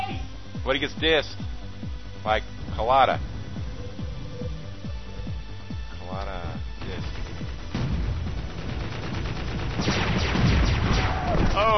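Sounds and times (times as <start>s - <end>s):
speech: 0.7s - 1.5s, 2.2s - 3.3s, 11.5s - 11.7s
mortar fire in a capture-the-flag video game: 7.0s - 11.7s.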